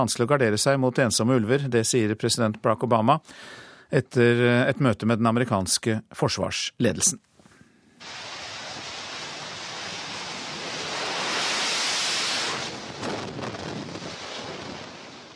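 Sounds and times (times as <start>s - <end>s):
speech: 0.0s - 7.3s
jet taking off from aircraft carrier USS Wasp in the Mediterranean: 8.0s - 15.3s.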